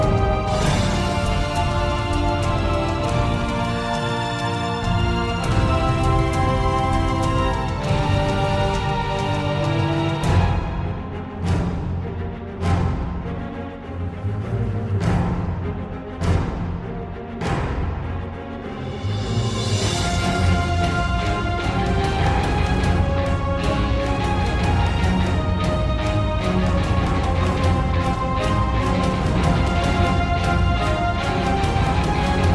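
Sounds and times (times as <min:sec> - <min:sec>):
fight music: 0:00.0 - 0:32.5.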